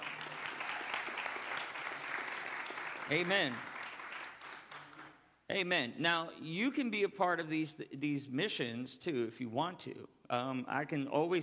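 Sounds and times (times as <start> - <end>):
hand clapping applause from a crowd: 0.0 - 5.2
speech: 3.1 - 3.7, 5.5 - 11.4.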